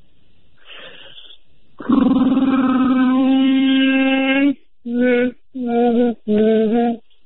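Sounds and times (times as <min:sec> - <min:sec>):
person imitating a Wookiee or Sasquatch call: 0:01.8 - 0:07.0.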